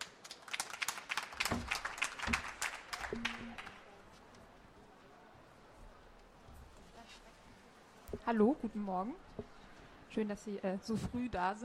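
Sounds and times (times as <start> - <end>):
audience applause: 0.0 - 4.0
speech: 3.1 - 3.4, 8.3 - 11.6.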